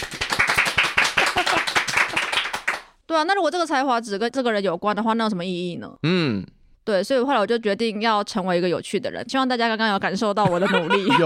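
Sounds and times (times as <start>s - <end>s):
small group clapping hands: 0.0s - 3.0s
laughter: 1.2s - 2.3s, 10.4s - 11.2s
speech: 3.1s - 11.2s.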